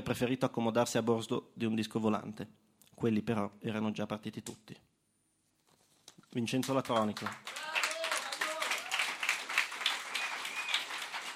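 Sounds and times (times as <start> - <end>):
speech: 0.0 - 4.9, 6.3 - 7.5
audience applause: 6.7 - 11.3
whistles and cheers: 8.7 - 11.3.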